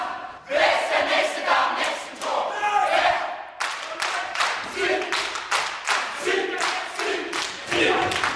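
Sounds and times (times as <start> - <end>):
large chorus shouting a rhythmic martial chant in unison: 0.0 - 8.3
stomping and clapping in a steady beat: 3.6 - 8.3.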